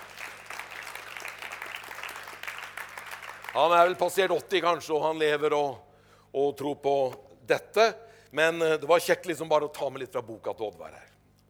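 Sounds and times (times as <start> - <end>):
audience applause: 0.0 - 4.0
speech: 3.6 - 11.1.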